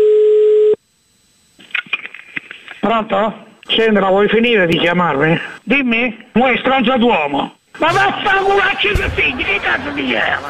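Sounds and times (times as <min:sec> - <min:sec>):
telephone ringing on an outgoing call: 0:00.0 - 0:00.8
speech: 0:02.9 - 0:10.4.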